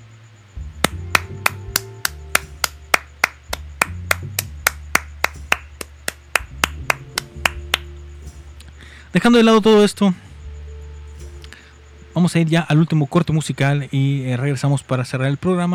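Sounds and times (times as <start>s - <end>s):
simple applause: 0.8s - 8.0s
speech: 9.2s - 10.2s, 12.2s - 15.7s.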